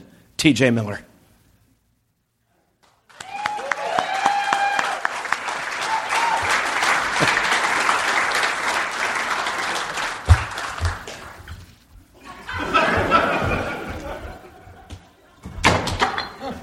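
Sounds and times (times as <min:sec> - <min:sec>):
speech: 0:00.4 - 0:01.1
whoops and cheers: 0:03.1 - 0:06.8
crowd applause: 0:03.1 - 0:11.6, 0:12.3 - 0:14.6
laughter: 0:06.9 - 0:08.1, 0:12.2 - 0:15.6, 0:16.2 - 0:16.6.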